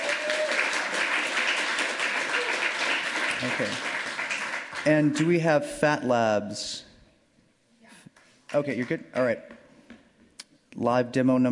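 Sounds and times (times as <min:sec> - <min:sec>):
audience applause: 0:00.0 - 0:04.9
speech: 0:03.4 - 0:03.9, 0:04.8 - 0:06.9, 0:08.5 - 0:09.6, 0:10.8 - 0:11.5.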